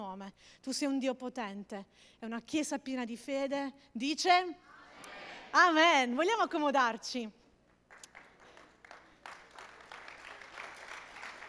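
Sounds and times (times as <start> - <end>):
speech: 0.2 - 4.7, 5.5 - 7.4
audience applauding: 7.9 - 11.4.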